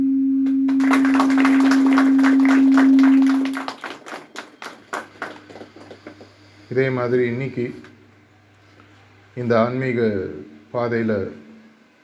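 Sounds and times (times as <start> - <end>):
audience applause: 0.5 - 6.4
speech: 6.7 - 7.9, 9.4 - 11.4.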